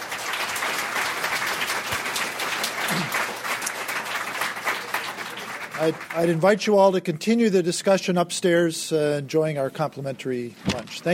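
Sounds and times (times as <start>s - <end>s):
round of applause: 0.0s - 6.4s
speech: 5.8s - 11.1s.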